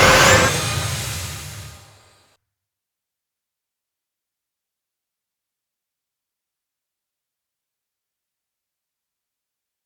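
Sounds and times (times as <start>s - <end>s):
aerial rising sound: 0.0s - 1.9s.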